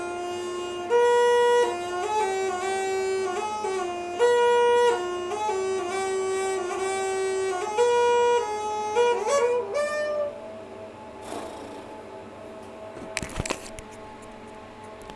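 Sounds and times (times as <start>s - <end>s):
bagpipe practice: 0.0s - 10.5s.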